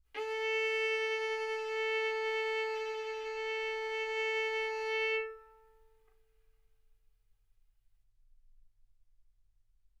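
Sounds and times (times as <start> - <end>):
violin bowed arco notes: 0.2 - 5.8.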